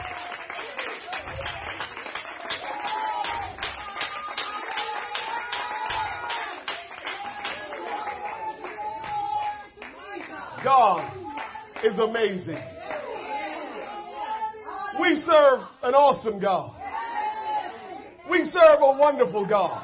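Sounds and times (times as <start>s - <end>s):
audience clapping hands rhythmically: 0.0s - 15.1s
voices singing and calling out: 2.7s - 19.8s
speech: 11.8s - 12.7s, 15.2s - 16.7s, 18.5s - 19.8s.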